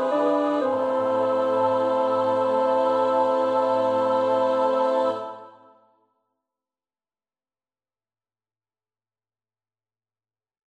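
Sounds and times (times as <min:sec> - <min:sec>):
tenor practising a choir part: 0:00.0 - 0:05.9.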